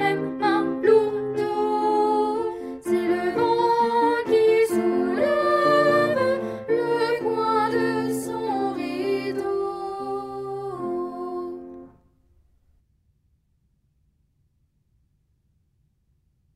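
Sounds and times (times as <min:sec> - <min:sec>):
chanting: 0:00.0 - 0:11.8
piano: 0:00.0 - 0:12.6.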